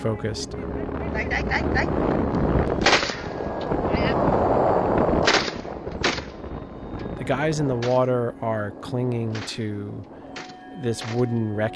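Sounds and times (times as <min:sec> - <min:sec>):
speech: 0:00.0 - 0:03.1, 0:03.7 - 0:04.5, 0:07.3 - 0:10.2, 0:10.8 - 0:11.7
gunshots fired at men in water: 0:02.8 - 0:03.4, 0:05.2 - 0:06.4.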